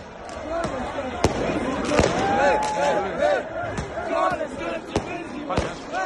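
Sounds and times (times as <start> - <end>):
Sarajevo street crowd chanting and cheering as Bosnia reaches the World Cup: 0.0 - 6.0
firecracker bangs: 1.2 - 2.8.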